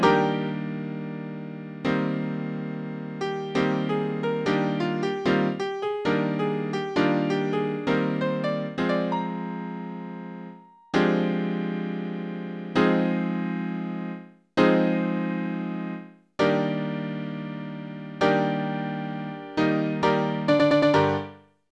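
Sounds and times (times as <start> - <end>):
piano dance piece: 0.0 - 21.5.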